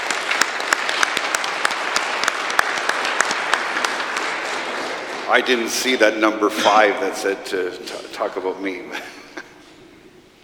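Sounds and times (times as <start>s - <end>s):
audience applause: 0.0s - 6.2s
speech: 5.3s - 9.2s.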